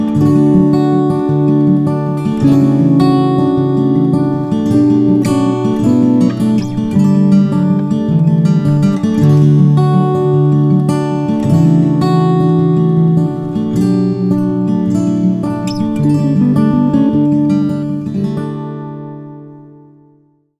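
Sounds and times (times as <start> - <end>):
instrumental music: 0.2 - 18.6.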